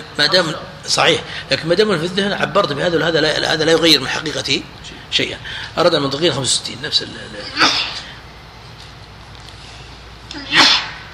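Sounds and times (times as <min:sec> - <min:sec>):
speech: 0:00.2 - 0:08.0
sneeze: 0:07.6 - 0:08.1, 0:10.3 - 0:11.1.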